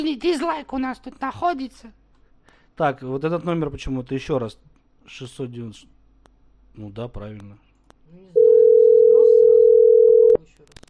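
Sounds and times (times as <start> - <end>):
speech: 0.0 - 2.0, 2.8 - 5.9, 6.8 - 8.4
telephone busy tone after a call is rejected: 8.4 - 10.4.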